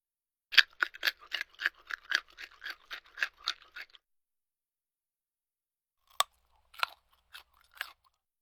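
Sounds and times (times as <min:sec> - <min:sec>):
grilled crispy bacon being bitten and chewed: 0:00.6 - 0:04.0, 0:06.1 - 0:08.2.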